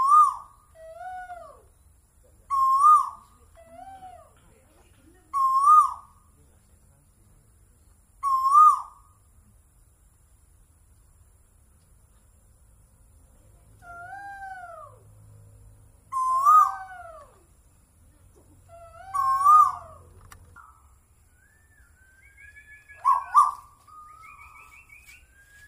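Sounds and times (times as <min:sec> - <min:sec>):
bird calls and whistles: 0:00.0 - 0:00.8, 0:02.5 - 0:03.4, 0:05.4 - 0:06.2, 0:08.2 - 0:09.1, 0:16.1 - 0:17.3, 0:18.9 - 0:25.6.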